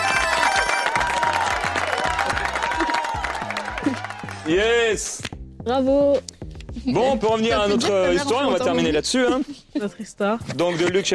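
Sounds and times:
audience applause and cheers: 0.0s - 5.0s
rhythmic bass-heavy musical backing: 0.0s - 9.5s
speech: 4.5s - 11.1s.

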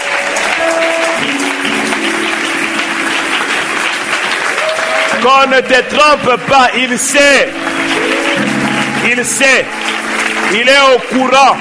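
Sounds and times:
church congregation applauding to acclaim the Lord: 0.0s - 11.5s
speech: 5.2s - 8.1s, 9.0s - 11.5s.

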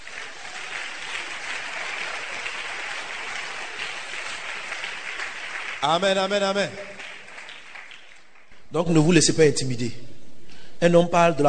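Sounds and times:
congregation applauding during a church service: 0.0s - 9.0s
speech: 5.8s - 6.9s, 8.7s - 10.1s, 10.8s - 11.4s.

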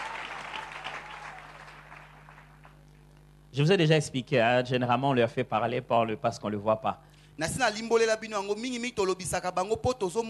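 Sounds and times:
audience applause: 0.0s - 2.8s
speech: 3.6s - 10.2s.

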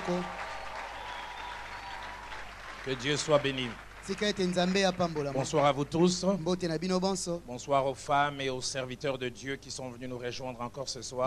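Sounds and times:
church congregation applauding: 0.0s - 6.0s
speech: 0.1s - 0.4s, 2.8s - 11.2s.

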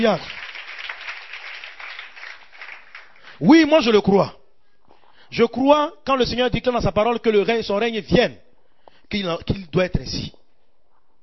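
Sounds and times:
speech: 0.0s - 0.4s, 3.4s - 4.4s, 5.3s - 8.4s, 9.1s - 10.4s
church congregation applauding the Lord: 0.0s - 3.8s.

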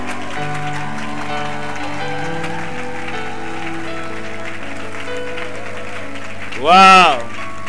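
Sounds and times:
crowd cheering and applauding: 0.0s - 7.6s
speech: 6.6s - 7.2s.

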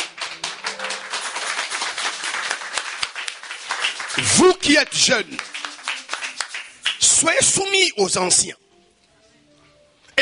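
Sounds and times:
congregation clapping in a French-language church service: 0.0s - 7.8s
speech: 4.2s - 5.5s, 7.2s - 8.6s.

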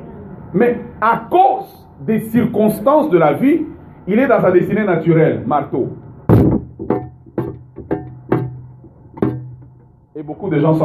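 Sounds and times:
speech: 0.5s - 6.0s, 10.3s - 10.8s
microphone banged like a hammer: 6.2s - 9.9s.

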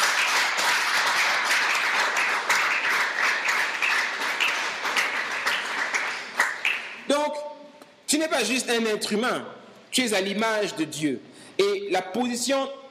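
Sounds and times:
church congregation applause acclaiming the Lord: 0.0s - 7.1s
speech: 8.2s - 12.8s.

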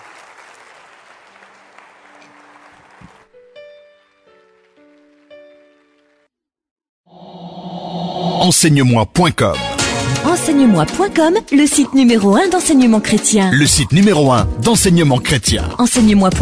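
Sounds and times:
audience applauding: 0.0s - 3.4s
speech: 8.5s - 16.4s.

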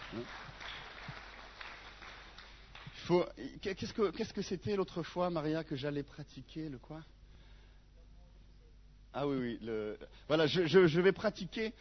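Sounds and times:
audience applause: 0.0s - 3.0s
speech: 0.1s - 1.2s, 3.1s - 7.2s, 9.2s - 11.7s.

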